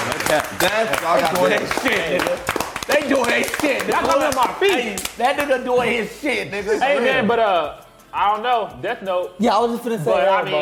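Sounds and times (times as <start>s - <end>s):
hand clap: 0.0s - 6.1s
speech: 0.3s - 10.6s.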